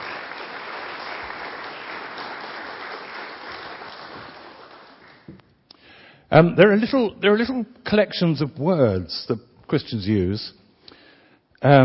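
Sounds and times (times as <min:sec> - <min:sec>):
audience applause: 0:00.0 - 0:05.3
speech: 0:06.3 - 0:10.6, 0:11.6 - 0:11.8.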